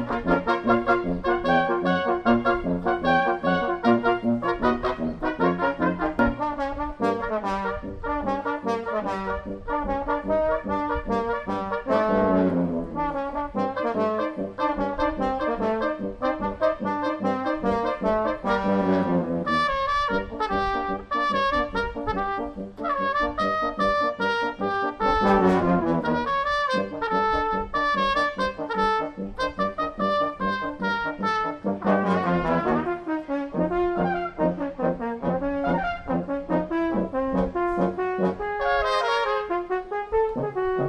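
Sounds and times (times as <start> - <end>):
brass quintet playing a galop: 0.0 - 40.8.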